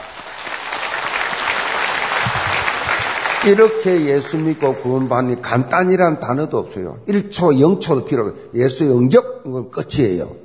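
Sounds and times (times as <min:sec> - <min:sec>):
audience applause: 0:00.0 - 0:05.3
speech: 0:03.4 - 0:10.4.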